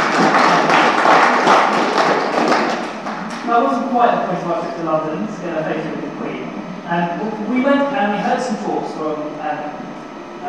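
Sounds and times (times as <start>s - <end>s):
group applauding steadily: 0.0s - 3.5s
speech: 3.6s - 9.8s.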